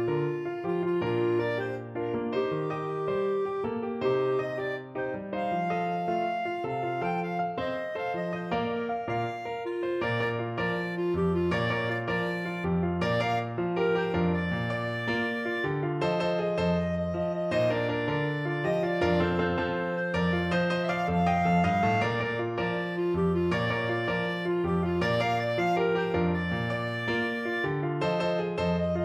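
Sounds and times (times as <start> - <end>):
clarinet: 0.0 - 29.0
salsa music: 8.4 - 29.0.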